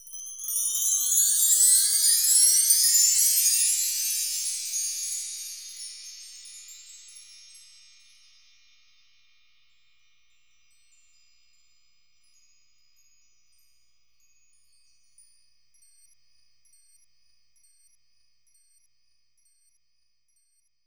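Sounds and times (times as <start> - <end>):
bells: 0.0 - 16.1.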